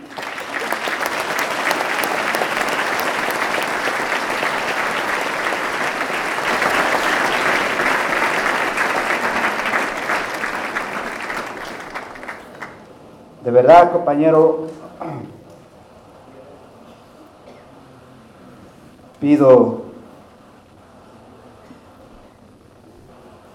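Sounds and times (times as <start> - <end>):
crowd applauding: 0.0 - 13.0
speech: 13.5 - 14.8, 19.2 - 19.8.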